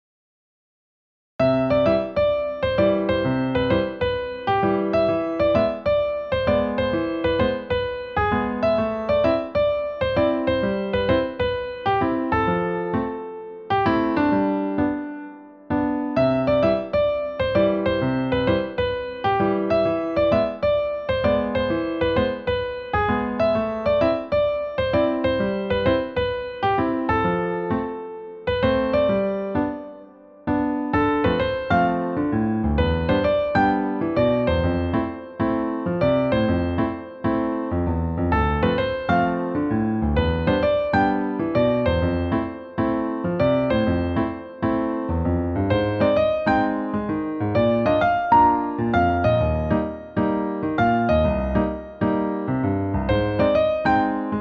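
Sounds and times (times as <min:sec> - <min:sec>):
new age music: 0:01.4 - 0:54.3.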